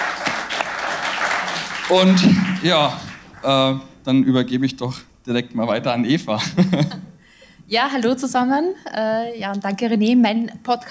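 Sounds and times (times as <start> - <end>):
audience applause: 0.0 - 3.8
speech: 1.9 - 7.0, 7.7 - 10.8
laughter: 6.3 - 7.2.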